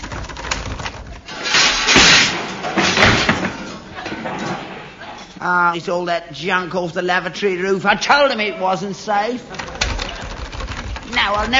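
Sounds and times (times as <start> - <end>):
stuck door being rattled: 0.0 - 4.4, 9.5 - 11.5
speech: 5.4 - 9.7, 11.2 - 11.5.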